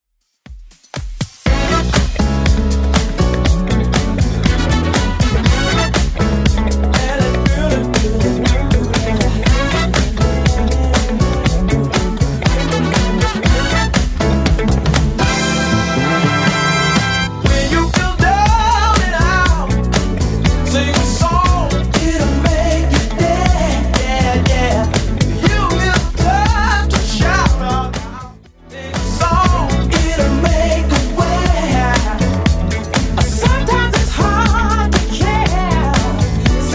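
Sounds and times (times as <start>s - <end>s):
1970s club music at 120 bpm: 0.5s - 36.7s.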